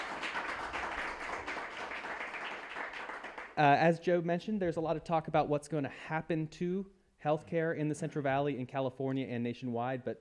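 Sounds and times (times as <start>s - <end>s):
crowd applauding: 0.0s - 3.6s
speech: 3.6s - 10.1s.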